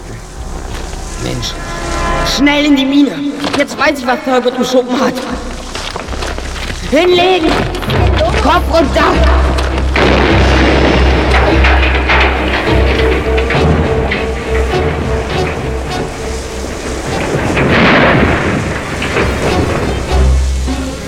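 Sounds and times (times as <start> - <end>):
debris crackling: 0.0 - 21.0
speech: 1.3 - 5.6, 6.9 - 7.7, 8.4 - 9.4
dynamite explosion with long heavy rumble: 7.6 - 20.7.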